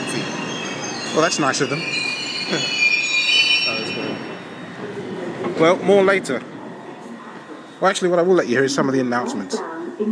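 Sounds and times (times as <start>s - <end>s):
train wheels squealing: 0.0s - 5.2s
train arriving: 0.0s - 9.7s
speech: 1.2s - 2.8s, 5.6s - 6.5s, 7.8s - 10.1s.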